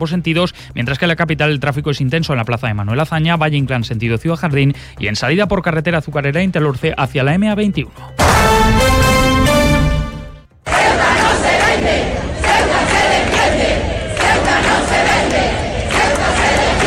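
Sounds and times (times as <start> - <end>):
speech: 0.0 - 9.1
crowd at a street demonstration in support of Ceuta: 10.6 - 16.8.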